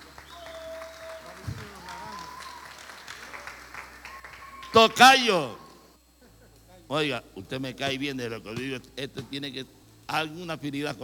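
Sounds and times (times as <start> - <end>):
audience applause: 0.0 - 5.8
speech: 4.7 - 5.6, 6.9 - 11.0.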